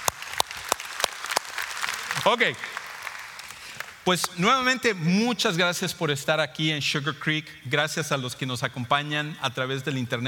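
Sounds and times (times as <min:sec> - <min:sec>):
audience applause: 0:00.0 - 0:04.0
speech: 0:02.2 - 0:02.8, 0:04.0 - 0:10.2.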